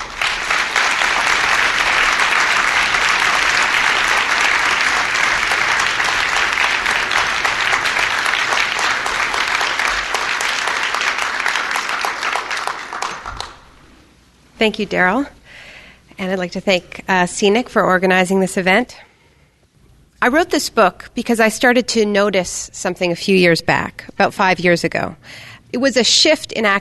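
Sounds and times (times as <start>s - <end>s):
audience applause welcoming author Naomi Klein to an evening talk: 0.0s - 14.0s
speech: 14.6s - 15.4s, 16.2s - 19.1s, 20.2s - 26.7s.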